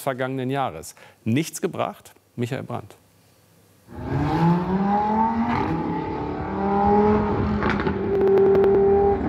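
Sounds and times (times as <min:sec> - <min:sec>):
speech: 0:00.0 - 0:03.0, 0:03.9 - 0:05.1
speeders' car engines roaring at night: 0:03.9 - 0:09.2.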